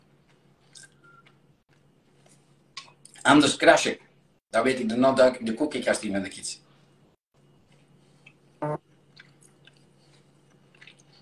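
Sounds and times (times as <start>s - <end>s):
person chewing food: 0.0s - 3.2s, 7.6s - 11.2s
speech: 3.2s - 6.7s.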